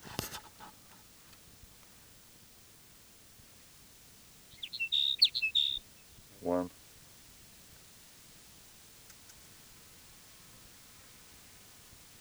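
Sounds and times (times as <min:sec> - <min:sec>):
sage sparrow singing: 0:04.4 - 0:06.7
speech: 0:06.4 - 0:06.8.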